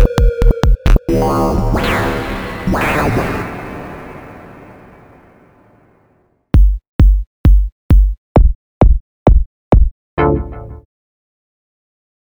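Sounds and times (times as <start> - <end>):
glitch and dark minimal house music: 0.0 - 4.6, 6.6 - 10.8.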